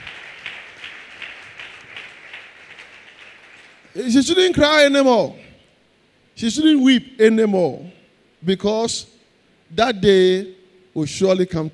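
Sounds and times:
rhythmic audience clapping: 0.0s - 4.4s
speech: 4.0s - 5.4s, 6.4s - 11.7s.

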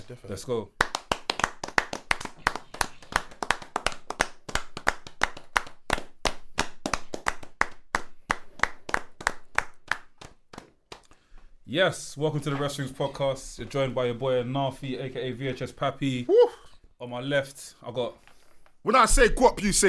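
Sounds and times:
few people clapping hands in birthday appreciation: 0.0s - 11.4s
speech: 0.1s - 0.9s, 11.7s - 18.2s, 18.8s - 19.8s.

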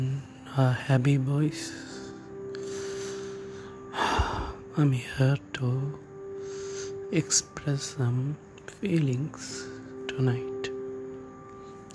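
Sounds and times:
speech: 0.6s - 1.9s, 4.8s - 6.1s, 7.1s - 10.5s
deep breath drawn before speaking: 1.8s - 4.7s.

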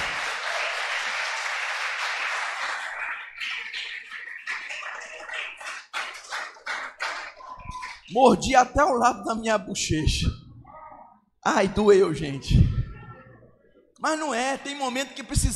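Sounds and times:
audience applauding: 0.0s - 8.1s
speech: 8.1s - 10.4s, 11.4s - 12.7s, 14.0s - 15.5s.

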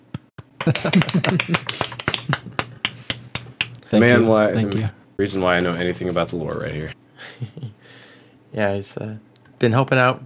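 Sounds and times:
soft golf clap: 0.4s - 7.0s
laughter: 0.6s - 3.3s
speech: 0.7s - 2.4s, 3.9s - 7.6s, 8.5s - 10.2s
voice murmuring: 1.9s - 7.0s.

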